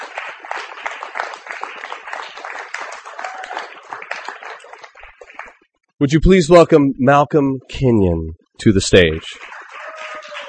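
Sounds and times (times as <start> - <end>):
audience applause for a performer at a literary reading: 0.0 - 5.6, 9.0 - 10.4
speech: 6.0 - 9.5.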